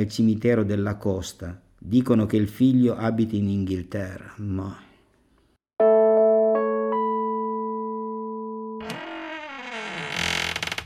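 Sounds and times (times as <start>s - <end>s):
speech: 0.0s - 4.8s
sustained electronic chord: 5.8s - 8.8s
door creaking open: 8.8s - 10.8s.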